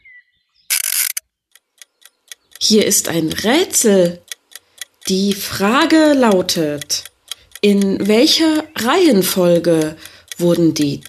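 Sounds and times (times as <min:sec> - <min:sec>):
egg timer being wound: 0:00.7 - 0:11.0
speech: 0:02.7 - 0:04.3, 0:05.1 - 0:11.0.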